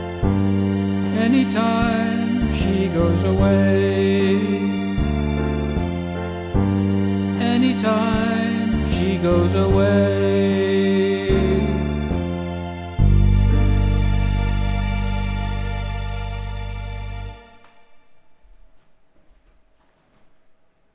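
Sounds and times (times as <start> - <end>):
vocals: 0.0 - 15.5.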